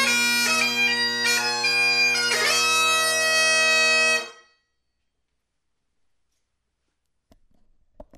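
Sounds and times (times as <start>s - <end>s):
bagpipes playing a six-eight march: 0.0s - 4.5s.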